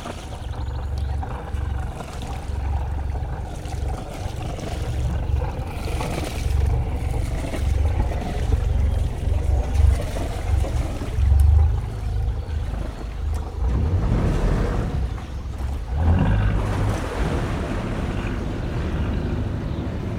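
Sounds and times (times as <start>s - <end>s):
canal soundscape: 0.0s - 20.1s.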